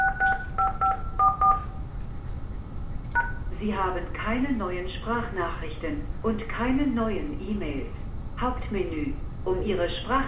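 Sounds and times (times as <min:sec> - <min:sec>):
telephone keypad tones entering a PIN: 0:00.0 - 0:01.8, 0:03.1 - 0:03.5
faint low hum: 0:00.0 - 0:10.2
speech: 0:03.6 - 0:10.2.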